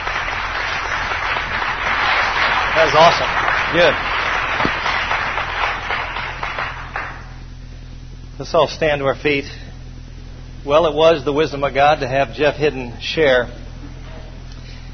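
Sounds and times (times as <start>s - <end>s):
audience hand clapping: 0.0s - 7.4s
speech: 2.8s - 4.1s, 8.4s - 9.6s, 10.6s - 13.6s.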